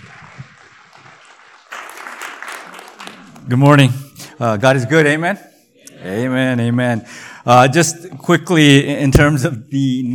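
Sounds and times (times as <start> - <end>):
audience applause: 0.0 - 3.8
speech: 3.5 - 10.1.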